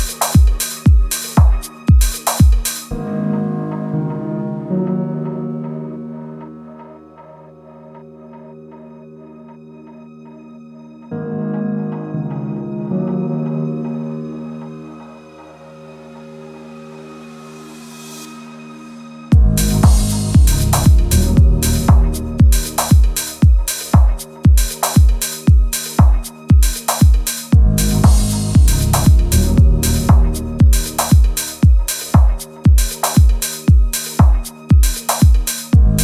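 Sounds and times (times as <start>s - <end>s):
instrumental deep house music: 0.0s - 10.2s, 19.3s - 36.0s.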